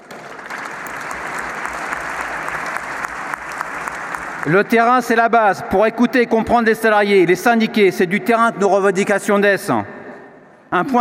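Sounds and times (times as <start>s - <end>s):
audience applause: 0.0s - 4.8s
speech: 4.4s - 9.9s, 10.7s - 10.9s.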